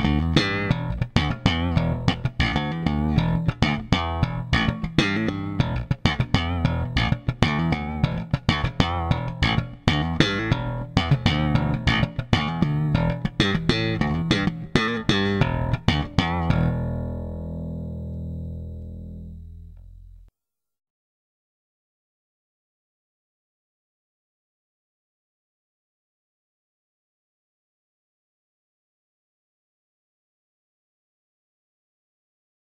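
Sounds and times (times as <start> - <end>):
electric guitar: 0.0 - 20.2.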